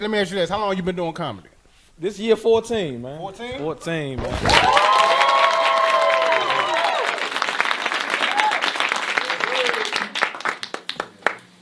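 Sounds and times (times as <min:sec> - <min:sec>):
speech: 0:00.0 - 0:05.1
crowd applauding: 0:04.2 - 0:11.5
crowd whoops: 0:04.4 - 0:07.4, 0:08.0 - 0:10.2.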